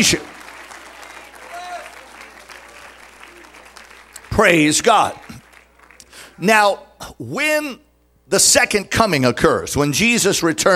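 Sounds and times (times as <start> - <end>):
speech: 0.0 - 0.3, 4.4 - 5.3, 6.4 - 10.7
audience clapping hands: 0.0 - 6.4.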